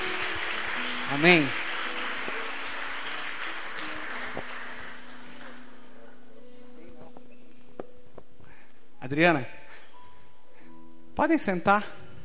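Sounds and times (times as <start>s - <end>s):
audience applauding: 0.0s - 5.6s
speech: 1.1s - 1.6s, 9.1s - 9.6s, 11.2s - 12.0s.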